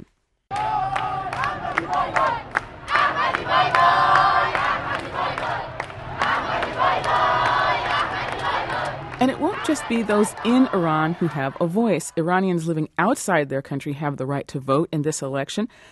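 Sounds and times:
crowd screaming at campaign rally in Tehran: 0:00.5 - 0:12.0
speech: 0:09.6 - 0:15.9.

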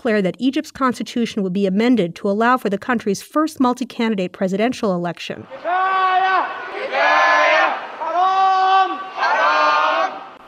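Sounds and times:
speech: 0:00.0 - 0:06.0
protest crowd chanting a slogan in unison: 0:05.4 - 0:10.4.

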